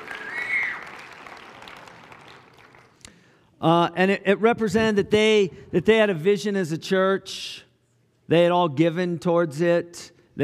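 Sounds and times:
audience clapping: 0:00.0 - 0:03.1
speech: 0:03.6 - 0:07.6, 0:08.3 - 0:10.4.

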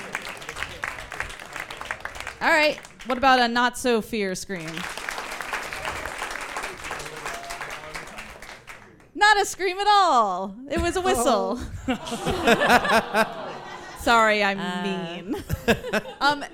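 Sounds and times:
laughter: 0:00.0 - 0:01.6, 0:10.8 - 0:16.5
audience clapping: 0:00.0 - 0:03.5, 0:04.6 - 0:09.2
speech: 0:02.4 - 0:05.0, 0:09.3 - 0:13.4, 0:14.0 - 0:16.5.

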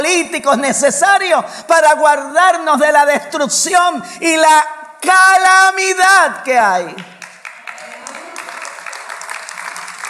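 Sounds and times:
speech: 0:00.0 - 0:07.2
audience applause: 0:07.2 - 0:10.0.

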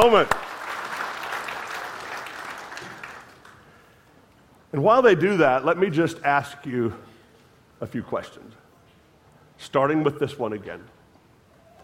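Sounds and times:
speech: 0:00.0 - 0:00.4, 0:04.7 - 0:07.1, 0:07.8 - 0:08.6, 0:09.6 - 0:11.0
audience applauding: 0:00.0 - 0:03.6.

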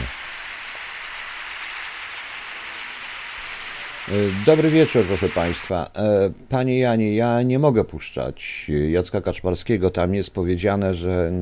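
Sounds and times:
audience applause: 0:00.0 - 0:05.7
speech: 0:04.1 - 0:11.4.

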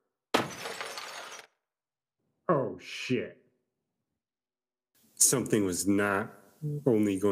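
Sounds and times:
ceramic figurine shattering: 0:00.3 - 0:01.6
scattering ceramic fragments clattering: 0:00.4 - 0:01.5
speech: 0:02.8 - 0:03.4, 0:05.2 - 0:07.3.

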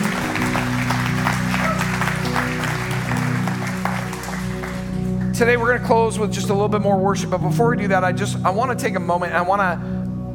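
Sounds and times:
audience applause: 0:00.0 - 0:05.4
speech: 0:05.4 - 0:09.9.

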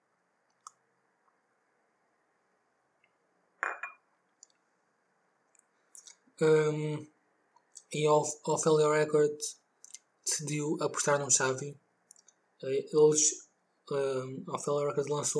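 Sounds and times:
glass clinks: 0:03.6 - 0:04.0
speech: 0:06.4 - 0:07.1, 0:07.9 - 0:09.6, 0:10.3 - 0:11.8, 0:12.6 - 0:15.3.

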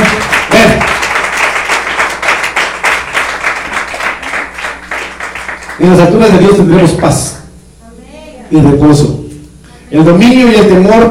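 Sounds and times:
audience clapping hands: 0:00.0 - 0:06.3
speech: 0:05.8 - 0:07.4, 0:08.5 - 0:09.2, 0:09.9 - 0:11.0.

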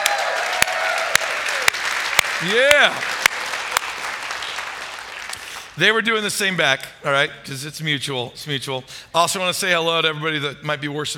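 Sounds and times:
audience hand clapping: 0:00.0 - 0:05.8
speech: 0:02.4 - 0:03.2, 0:05.8 - 0:11.1.

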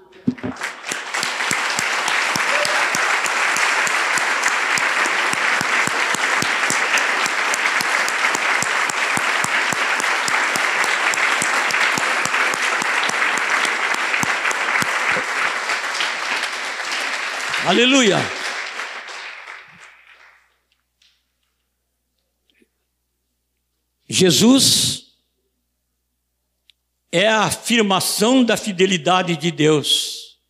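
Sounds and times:
audience applause: 0:00.3 - 0:20.5
speech: 0:17.7 - 0:18.4, 0:24.2 - 0:25.0, 0:27.1 - 0:30.4.

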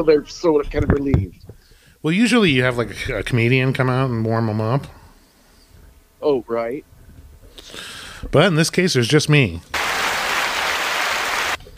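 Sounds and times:
speech: 0:00.0 - 0:05.0, 0:06.2 - 0:06.9, 0:07.6 - 0:09.8
studio audience applause: 0:09.8 - 0:11.6.

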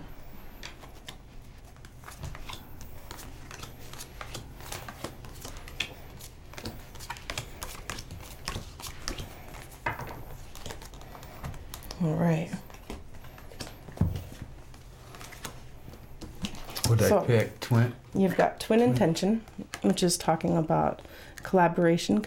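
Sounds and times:
deck of cards for a spiritual card reading being shuffled: 0:00.6 - 0:12.0, 0:12.6 - 0:17.6
speech: 0:12.0 - 0:12.6, 0:17.0 - 0:22.2.

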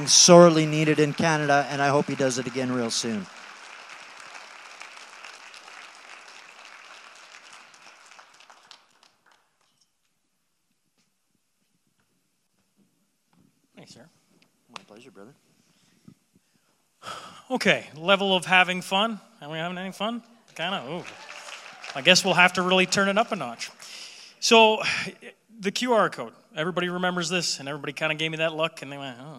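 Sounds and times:
speech: 0:00.0 - 0:03.4, 0:17.5 - 0:21.3, 0:22.0 - 0:23.8, 0:24.4 - 0:29.3
audience applause: 0:00.0 - 0:09.7, 0:20.6 - 0:24.2.

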